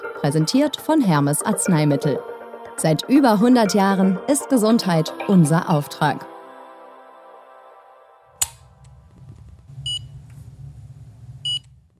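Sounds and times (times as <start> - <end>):
speech: 0.2 - 6.3
blood glucose meter beep: 11.5 - 11.7.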